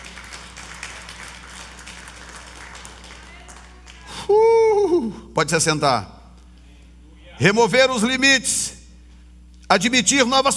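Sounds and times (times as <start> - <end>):
audience applauding: 0.0 - 4.4
low steady hum: 0.0 - 10.5
speech: 4.3 - 6.2, 7.4 - 8.8, 9.7 - 10.5.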